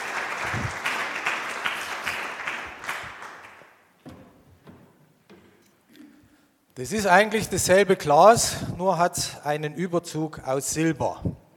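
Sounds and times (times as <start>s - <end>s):
audience applause: 0.0s - 3.8s
speech: 6.8s - 11.4s.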